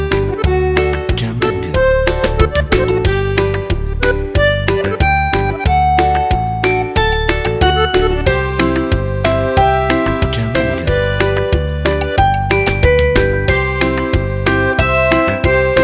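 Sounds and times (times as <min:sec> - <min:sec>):
upbeat corporate music: 0:00.0 - 0:15.8.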